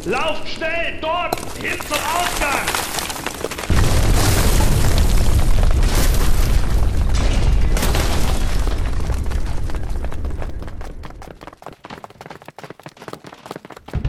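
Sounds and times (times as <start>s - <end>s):
speech: 0.0s - 3.2s
small falling-debris clicks and crackles: 1.3s - 11.2s
ceiling collapsing: 1.4s - 11.1s.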